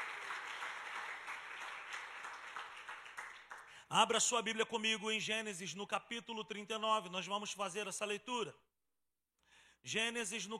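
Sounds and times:
audience applauding: 0.0s - 3.8s
speech: 3.9s - 8.6s, 9.8s - 10.5s.

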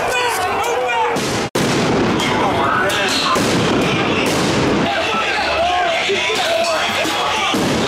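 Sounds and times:
crowd shouting: 0.0s - 1.5s, 2.1s - 7.8s
police firing non-lethal munitions: 1.1s - 7.8s.

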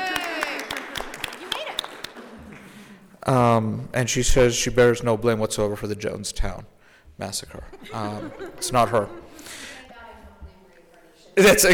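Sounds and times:
audience applause for a birthday: 0.0s - 2.8s
speech: 3.2s - 9.7s, 11.4s - 11.7s
laughter: 7.5s - 9.6s.

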